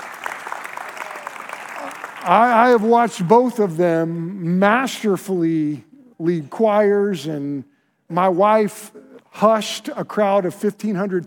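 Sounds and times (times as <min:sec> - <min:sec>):
audience clapping for two music teachers: 0:00.0 - 0:03.0
speech: 0:02.2 - 0:11.2.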